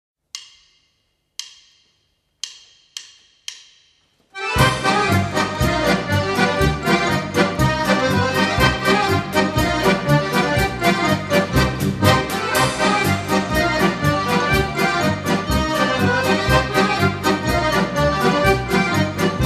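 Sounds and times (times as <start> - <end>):
accordion orchestra playing a Karelian-Finnish polka: 4.4 - 19.4.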